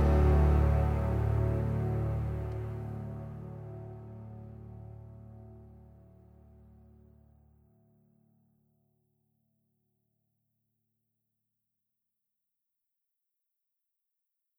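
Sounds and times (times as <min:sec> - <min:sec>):
instrumental music: 0:00.0 - 0:06.0.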